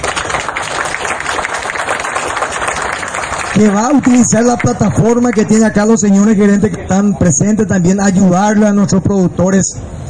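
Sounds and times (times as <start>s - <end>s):
audience applause at an institutional presentation: 0.0s - 5.6s
speech: 3.6s - 10.0s.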